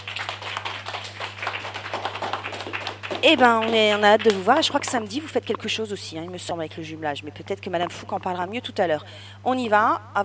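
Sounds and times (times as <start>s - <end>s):
audience applause: 0.0s - 5.1s
low steady electrical hum: 0.0s - 10.2s
speech: 3.2s - 10.2s.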